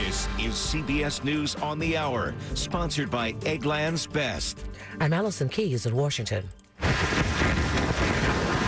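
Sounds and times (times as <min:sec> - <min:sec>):
speech: 0:00.1 - 0:06.6
roaring waters of storm Fiona in Canada: 0:06.8 - 0:08.6
whistling winds of storm Fiona in Canada: 0:06.8 - 0:08.6.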